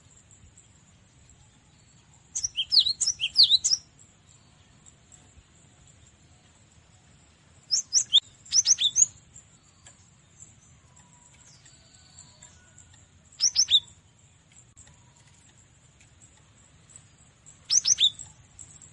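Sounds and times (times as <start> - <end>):
cinereous tit whistling song: 2.3 - 3.9, 7.7 - 9.2, 13.4 - 14.0, 17.6 - 18.4.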